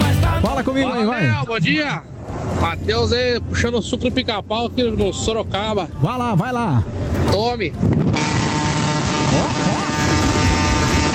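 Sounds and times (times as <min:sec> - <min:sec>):
speech: 0:00.6 - 0:08.3
many car horns honking in Sorocaba: 0:08.0 - 0:11.1.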